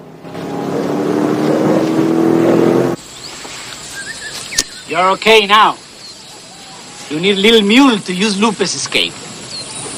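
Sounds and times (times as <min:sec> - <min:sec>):
truck engine roaring: 0:00.0 - 0:03.0
speech: 0:04.9 - 0:05.8, 0:07.1 - 0:09.2.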